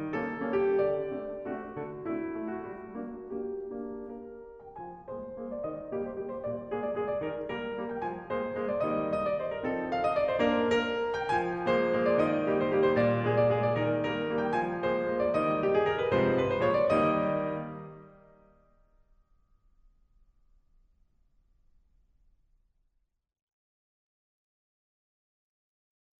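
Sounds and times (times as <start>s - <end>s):
waltz music: 0.0s - 18.2s.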